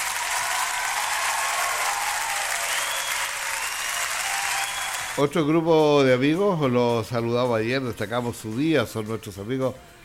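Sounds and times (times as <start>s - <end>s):
applause: 0.0s - 5.2s
speech: 5.2s - 9.9s.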